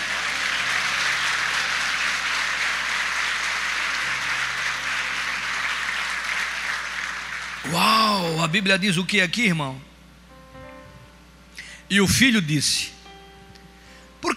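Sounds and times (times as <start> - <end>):
audience applauding: 0.0 - 8.5
speech: 7.7 - 9.9, 11.9 - 13.0.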